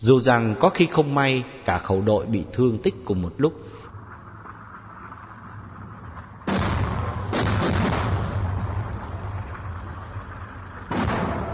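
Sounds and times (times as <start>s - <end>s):
speech: 0.0s - 3.8s
enemy artillery shells whistling overhead: 4.0s - 11.5s
enemy artillery shells exploding: 5.7s - 11.5s.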